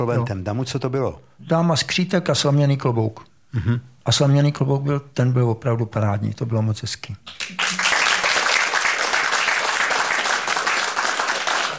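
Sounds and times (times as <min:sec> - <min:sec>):
speech: 0:00.0 - 0:07.7
crowd applause: 0:07.4 - 0:11.7.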